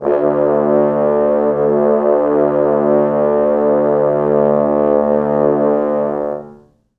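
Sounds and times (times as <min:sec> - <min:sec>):
four French horns sustaining D1: 0:00.0 - 0:06.6.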